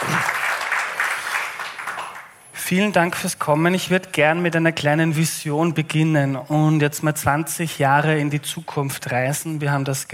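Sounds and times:
audience applause at the start of a panel discussion: 0.0s - 2.5s
speech: 2.7s - 10.1s.

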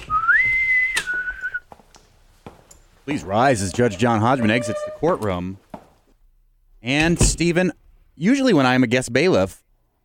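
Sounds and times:
bosun's whistle: 0.0s - 1.7s
speech: 3.1s - 5.6s, 6.8s - 9.6s.

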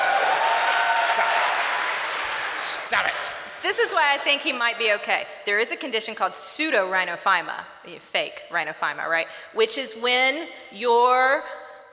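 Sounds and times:
audience applause: 0.0s - 3.2s
speech: 2.9s - 11.6s.

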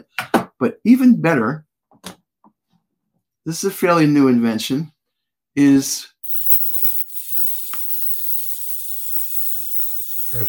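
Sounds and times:
speech: 0.1s - 2.2s, 3.4s - 4.9s, 5.6s - 6.1s
electric arc lighter crackling: 6.2s - 10.4s.

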